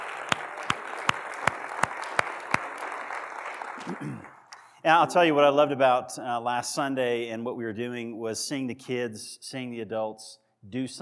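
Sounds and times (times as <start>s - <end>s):
audience applause: 0.0s - 4.7s
speech: 3.8s - 10.9s.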